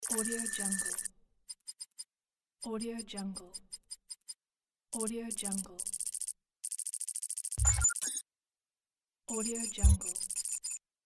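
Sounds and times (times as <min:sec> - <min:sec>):
digital text effect: 0:00.0 - 0:02.1, 0:05.0 - 0:08.2, 0:09.3 - 0:10.8.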